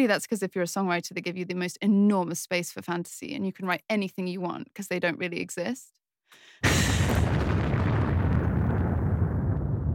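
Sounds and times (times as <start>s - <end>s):
speech: 0.0s - 7.2s
radio bomb explosion sound effect: 6.6s - 9.9s.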